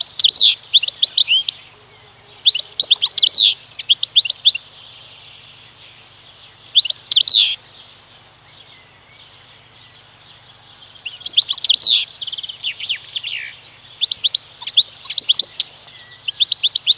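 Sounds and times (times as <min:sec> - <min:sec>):
European goldfinch song: 0:00.0 - 0:16.9.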